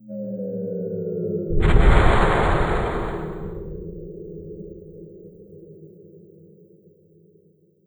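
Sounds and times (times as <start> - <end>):
explosion: 1.5 - 5.1.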